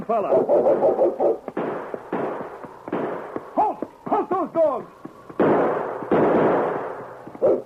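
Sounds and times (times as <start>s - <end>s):
speech: 0.1s - 1.5s, 4.4s - 5.0s
burst: 0.4s - 4.7s, 5.3s - 7.6s
gunshots: 0.5s - 3.5s, 5.4s - 7.6s.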